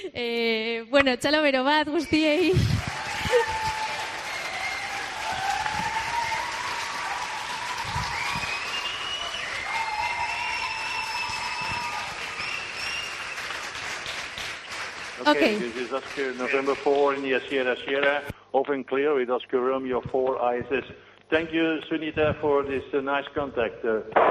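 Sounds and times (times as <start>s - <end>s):
speech: 0.0s - 3.8s, 15.3s - 24.2s
audience applause: 2.6s - 17.5s.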